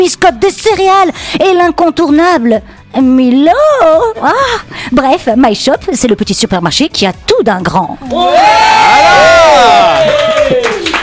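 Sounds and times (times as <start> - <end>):
speech: 0.0 - 11.0
audience applauding and cheering: 8.0 - 11.0.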